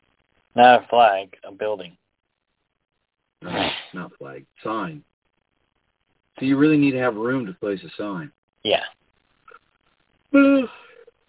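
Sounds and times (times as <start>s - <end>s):
speech: 0.6s - 2.0s, 3.4s - 5.1s, 6.4s - 9.0s, 10.3s - 10.8s
person yawning: 10.3s - 11.1s.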